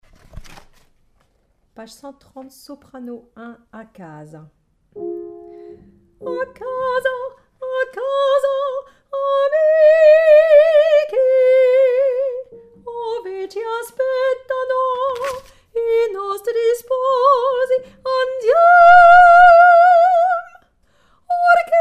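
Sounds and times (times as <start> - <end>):
soprano singing: 5.0 - 20.6, 21.2 - 21.8.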